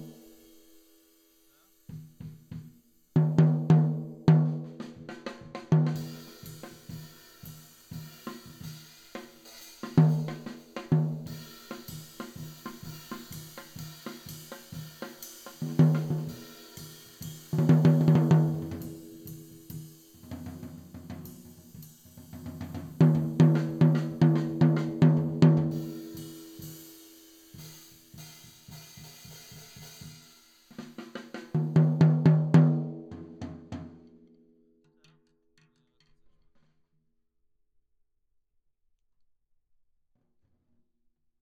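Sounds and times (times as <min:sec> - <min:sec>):
tom drum: 0:01.5 - 0:34.0.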